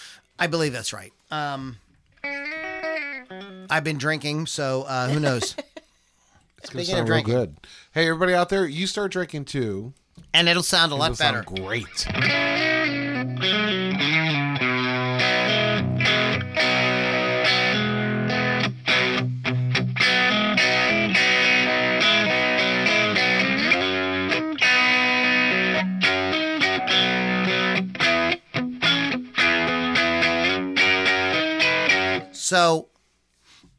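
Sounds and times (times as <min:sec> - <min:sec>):
speech: 0:00.4 - 0:02.4, 0:03.7 - 0:05.7, 0:06.6 - 0:12.6, 0:32.5 - 0:32.9
distorted electric guitar riff in open G tuning: 0:02.1 - 0:03.9, 0:12.0 - 0:32.4
laughter: 0:05.0 - 0:05.8.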